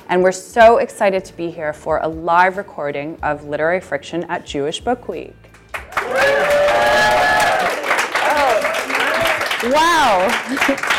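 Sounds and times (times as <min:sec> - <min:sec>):
speech: 0:00.1 - 0:05.5, 0:09.6 - 0:10.9
live crowd cheering: 0:05.9 - 0:10.9
laughter: 0:08.2 - 0:10.9.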